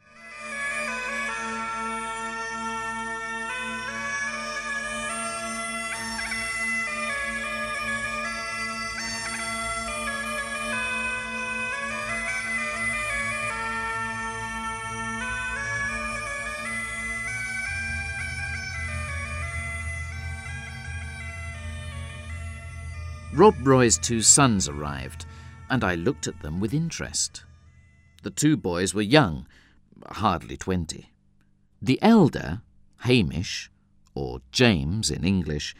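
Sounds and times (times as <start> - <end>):
bagpipes playing a slow mournful melody: 0.0 - 29.7
speech: 23.4 - 27.5, 28.2 - 31.1, 31.8 - 35.7.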